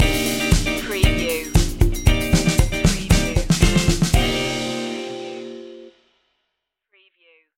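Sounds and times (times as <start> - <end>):
soul fusion stinger: 0.0 - 5.9.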